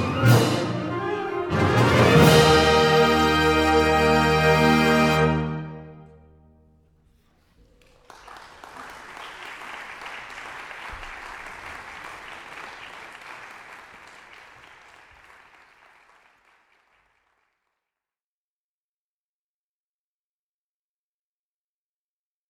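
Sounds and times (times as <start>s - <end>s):
fanfare: 0.0s - 6.2s.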